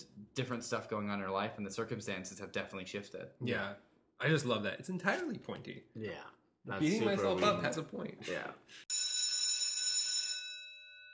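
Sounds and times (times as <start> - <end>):
speech: 0.4 - 9.1
bell ringing to mark segment: 8.9 - 11.1.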